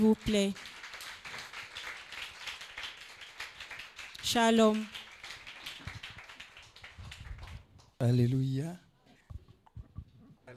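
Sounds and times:
speech: 0:00.0 - 0:00.8, 0:04.3 - 0:05.0, 0:08.0 - 0:08.8
audience clapping: 0:00.0 - 0:08.0.

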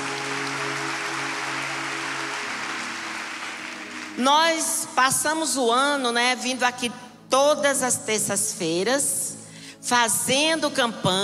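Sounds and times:
audience applauding: 0:00.0 - 0:04.3
speech: 0:04.2 - 0:09.2, 0:09.8 - 0:11.2.

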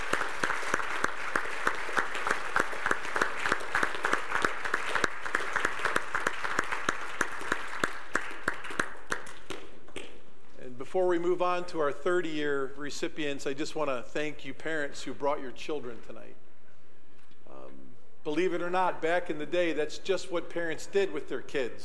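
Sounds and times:
audience applause: 0:00.0 - 0:09.5
speech: 0:11.2 - 0:16.3, 0:18.3 - 0:21.8.

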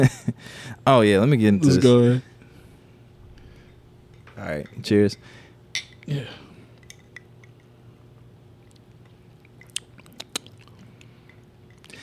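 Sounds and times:
speech: 0:00.0 - 0:02.3, 0:04.4 - 0:05.4, 0:06.1 - 0:06.4
steady low hum: 0:00.0 - 0:12.0
wet chewing of black licorice candy: 0:08.6 - 0:12.0.

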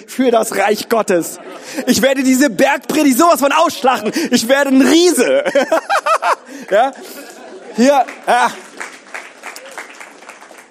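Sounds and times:
speech: 0:00.0 - 0:08.7
laughter: 0:00.6 - 0:09.6
audience applause: 0:06.5 - 0:10.6.

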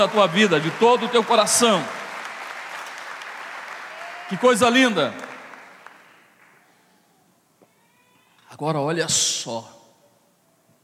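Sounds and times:
speech: 0:00.0 - 0:02.0, 0:04.3 - 0:05.3, 0:08.6 - 0:09.8
audience applauding: 0:00.0 - 0:06.8.

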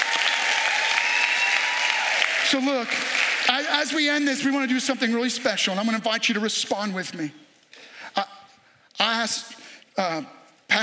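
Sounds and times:
large audience applause: 0:00.0 - 0:05.7
speech: 0:02.5 - 0:07.5, 0:09.2 - 0:10.8.

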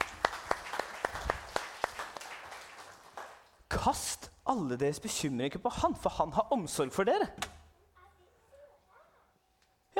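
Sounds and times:
small group clapping: 0:00.0 - 0:03.7
speech: 0:03.8 - 0:07.5.

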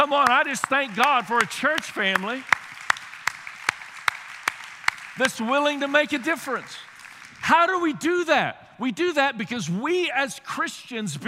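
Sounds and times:
speech: 0:00.0 - 0:02.6, 0:05.2 - 0:11.2
audience applause: 0:00.0 - 0:07.8.

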